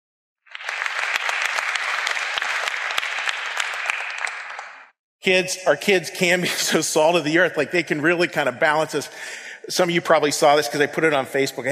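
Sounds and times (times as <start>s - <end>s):
crowd applauding: 0.4s - 5.0s
speech: 5.2s - 11.6s.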